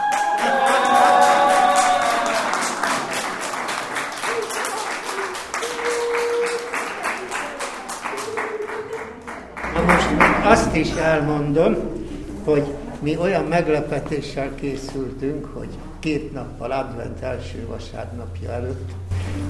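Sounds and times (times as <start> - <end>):
audience applause for an encore: 0.0 - 11.4
speech: 10.8 - 19.4.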